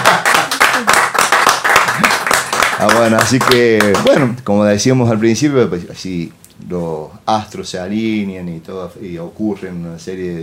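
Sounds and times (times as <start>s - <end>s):
hands clapping: 0.0s - 4.3s
speech: 2.8s - 10.4s.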